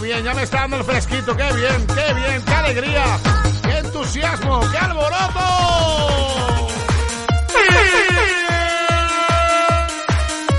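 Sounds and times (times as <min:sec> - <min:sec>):
speech: 0:00.2 - 0:06.7, 0:07.5 - 0:08.5
air horn blast: 0:07.5 - 0:10.5.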